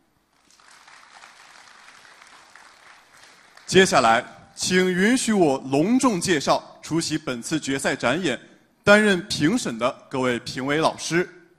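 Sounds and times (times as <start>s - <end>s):
crowd applause: 0.3s - 4.0s
speech: 3.7s - 11.4s.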